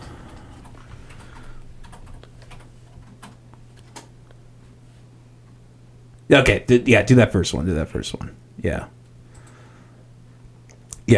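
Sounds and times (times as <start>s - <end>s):
low steady hum: 0.0s - 11.1s
typing on a computer keyboard: 0.3s - 4.1s
speech: 6.3s - 9.0s.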